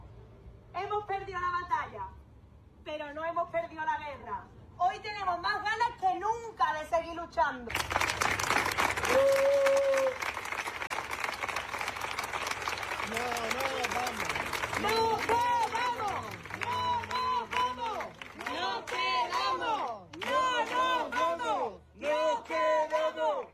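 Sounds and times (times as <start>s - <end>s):
speech: 0.7s - 2.1s, 2.9s - 10.2s, 13.1s - 15.4s
protest crowd cheering and clapping: 7.7s - 23.1s
protest crowd chanting: 14.8s - 23.5s.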